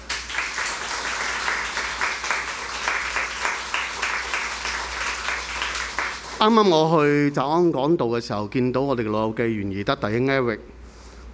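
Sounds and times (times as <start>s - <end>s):
applause: 0.0s - 7.2s
speech: 6.4s - 10.7s.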